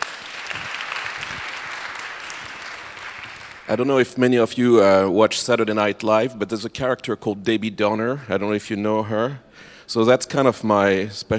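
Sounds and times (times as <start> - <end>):
audience applause: 0.0 - 3.8
speech: 3.7 - 11.3.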